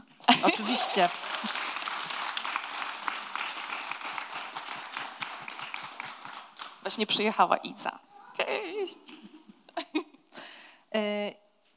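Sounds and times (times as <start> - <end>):
applause from a small group: 0.2 - 7.3
laughter: 0.3 - 2.1
speech: 0.4 - 1.6, 6.9 - 9.2, 11.0 - 11.4.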